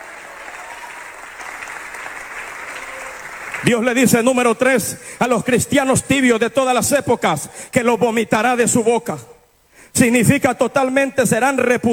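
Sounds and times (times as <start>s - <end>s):
audience applauding: 0.0s - 4.5s
speech: 3.6s - 9.3s, 9.9s - 11.9s.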